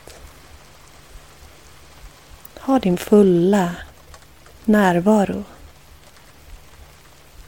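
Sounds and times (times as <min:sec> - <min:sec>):
rain falling: 0:00.0 - 0:07.4
speech: 0:02.6 - 0:03.8, 0:04.7 - 0:05.6.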